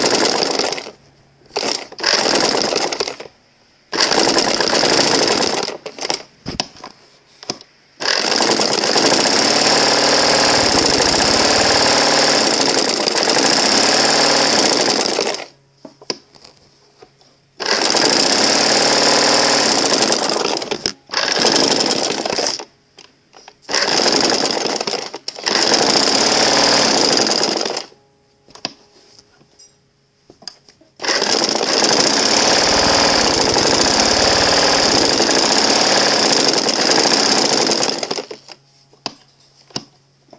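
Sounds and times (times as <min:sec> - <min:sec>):
sewing machine: 0:00.0 - 0:03.3, 0:03.9 - 0:06.3, 0:08.0 - 0:15.6, 0:17.6 - 0:22.7, 0:23.6 - 0:28.0, 0:31.0 - 0:38.6.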